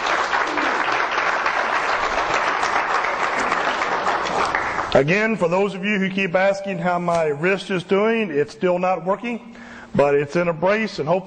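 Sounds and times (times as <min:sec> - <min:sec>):
applause: 0:00.0 - 0:05.1
speech: 0:04.9 - 0:11.2.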